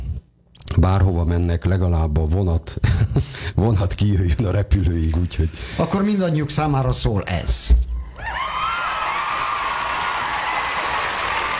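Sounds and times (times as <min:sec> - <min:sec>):
speech: 0:00.8 - 0:07.8
crowd applause: 0:08.3 - 0:11.5.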